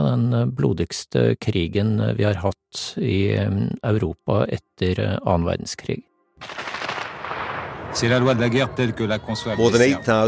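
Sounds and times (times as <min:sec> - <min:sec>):
speech: 0:00.2 - 0:06.7, 0:07.9 - 0:10.2
rapid gunfire: 0:06.4 - 0:08.3.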